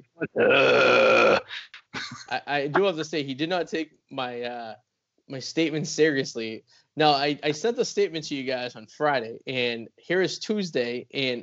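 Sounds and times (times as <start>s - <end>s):
person imitating a troll's guttural grunt: 0.2s - 1.5s
speech: 0.2s - 1.6s, 2.3s - 11.4s.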